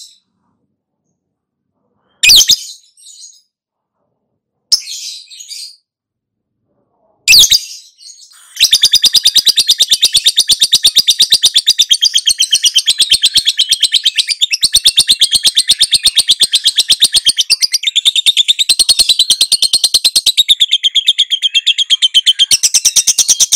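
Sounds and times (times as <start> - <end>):
lovebird high chattering twitters: 8.4 - 23.5.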